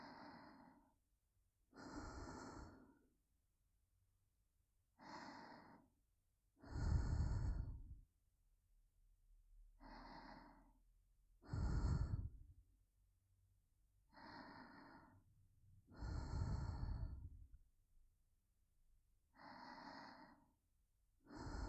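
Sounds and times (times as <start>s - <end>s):
breathing in the right ear: 0.0s - 1.0s, 1.8s - 3.1s, 5.0s - 5.9s, 6.6s - 8.0s, 9.8s - 10.8s, 11.4s - 12.6s, 14.1s - 17.6s, 19.3s - 20.6s, 21.3s - 21.6s.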